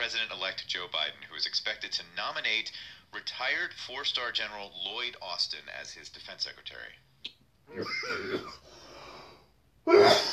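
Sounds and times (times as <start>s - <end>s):
speech: 0.1s - 8.8s, 9.8s - 10.3s
person coughing: 7.8s - 8.6s, 9.9s - 10.3s.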